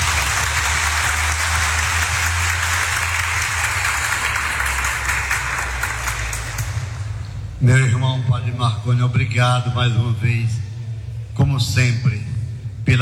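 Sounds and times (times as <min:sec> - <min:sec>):
audience applause: 0:00.0 - 0:07.2
speech: 0:07.6 - 0:10.6, 0:11.4 - 0:12.3.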